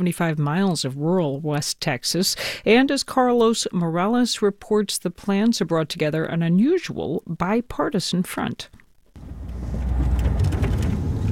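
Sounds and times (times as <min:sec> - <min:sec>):
speech: 0:00.0 - 0:08.8
car driving across family farmland near Redford Texas on a spring morning: 0:09.2 - 0:11.3.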